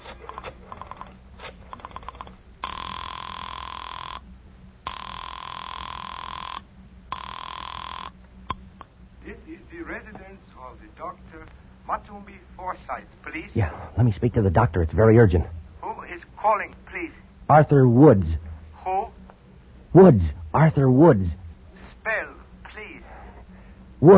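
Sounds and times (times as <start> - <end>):
telephone ringing on the other end after dialing a doctor: 0.2 - 8.2
speech: 10.7 - 15.6, 16.4 - 18.4, 19.9 - 21.4.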